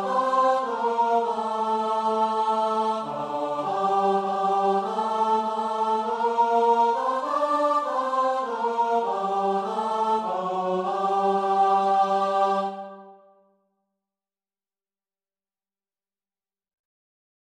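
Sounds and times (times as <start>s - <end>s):
choir singing a hymn: 0.0s - 13.4s.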